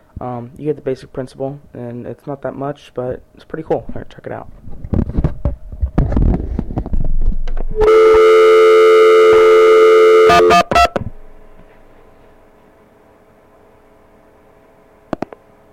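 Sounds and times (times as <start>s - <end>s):
faint hum: 0.0s - 15.7s
speech: 0.2s - 4.8s
Proctor telephone line test set multi-tone signal in an open-line test: 7.7s - 11.1s
Proctor telephone line test set clicks: 15.1s - 15.4s.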